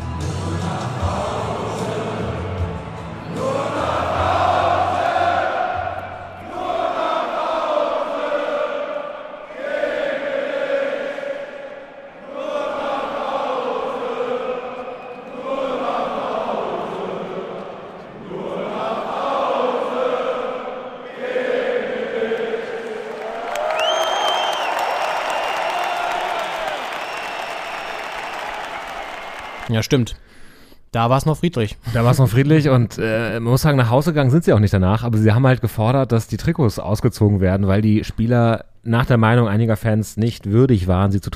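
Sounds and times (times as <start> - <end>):
stadium crowd cheering and chanting: 0.0 - 29.8
speech: 29.8 - 30.2, 30.9 - 41.3.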